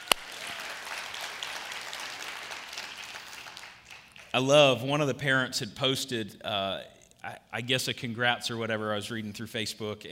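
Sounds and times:
soft audience applause from parents for students: 0:00.0 - 0:04.4
speech: 0:04.4 - 0:10.1.

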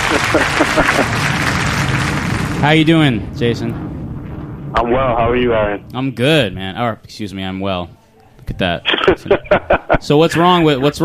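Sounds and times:
laughter: 0:00.0 - 0:01.6, 0:08.8 - 0:10.7
applause button sound effect: 0:00.0 - 0:03.1
speech: 0:00.4 - 0:01.4, 0:02.6 - 0:03.9, 0:04.7 - 0:11.0.

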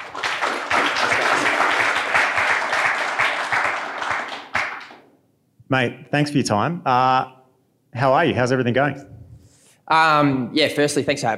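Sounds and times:
audience round of applause: 0:00.0 - 0:05.0
speech: 0:05.7 - 0:09.2, 0:09.9 - 0:11.3.

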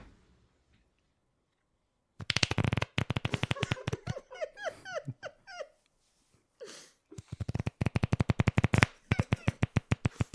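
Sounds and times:
playing cards being riffle shuffled: 0:02.2 - 0:04.2, 0:07.2 - 0:10.3
laughter: 0:03.3 - 0:05.8.

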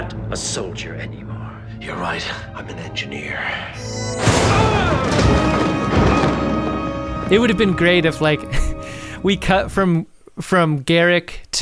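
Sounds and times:
speech: 0:00.1 - 0:05.5, 0:07.3 - 0:11.6
improvised explosive device bomb explosion: 0:03.8 - 0:07.3
rumbling crackling debris: 0:04.3 - 0:08.0.

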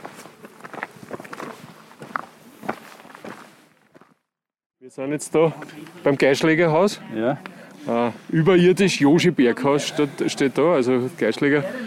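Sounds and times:
footsteps of people walking: 0:00.0 - 0:04.2
speech: 0:04.9 - 0:11.8.

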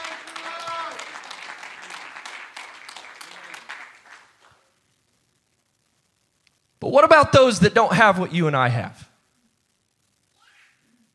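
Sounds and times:
audience clapping: 0:00.0 - 0:04.7
speech: 0:06.8 - 0:09.0.

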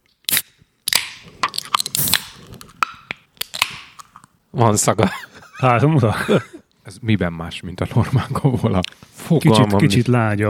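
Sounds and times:
Kofola lemonade bottle being opened: 0:00.2 - 0:04.3
speech: 0:04.6 - 0:10.4
laughter: 0:05.0 - 0:06.7, 0:07.8 - 0:08.9.

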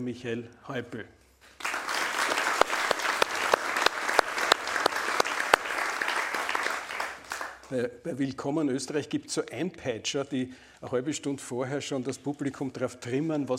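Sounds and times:
speech: 0:00.0 - 0:01.8, 0:07.7 - 0:13.5
audience applause welcoming guest: 0:01.6 - 0:07.7.

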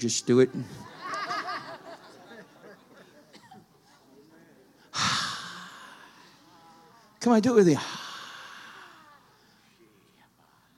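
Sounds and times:
speech: 0:00.0 - 0:00.9, 0:07.2 - 0:08.0
laughter: 0:00.0 - 0:04.2
church congregation breathing out together: 0:04.8 - 0:10.7.

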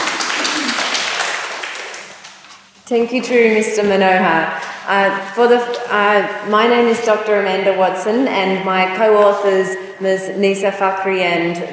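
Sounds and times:
audience applause welcoming a speaker at an academic presentation: 0:00.0 - 0:02.3
speech: 0:02.9 - 0:11.7.

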